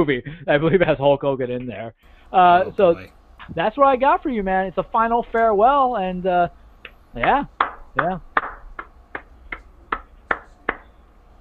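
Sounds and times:
speech: 0.0 - 8.3
one person clapping: 6.8 - 10.9.

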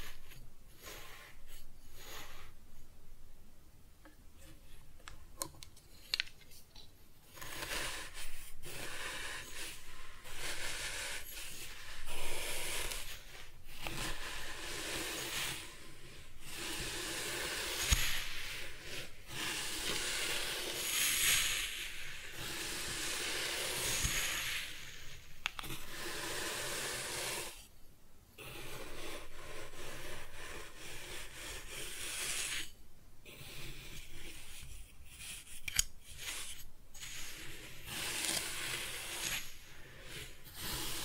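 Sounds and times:
kinetic sand being cut and scooped: 7.3 - 27.6, 28.4 - 35.5, 36.1 - 41.0.

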